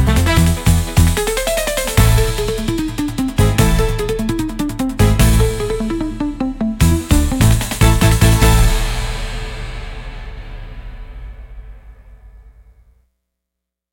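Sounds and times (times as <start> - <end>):
upbeat carnival music: 0.0 - 10.3.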